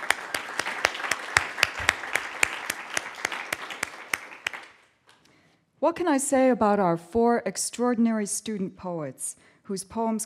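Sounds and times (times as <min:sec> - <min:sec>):
audience applause at an evening poetry reading: 0:00.0 - 0:04.8
speech: 0:05.8 - 0:10.2.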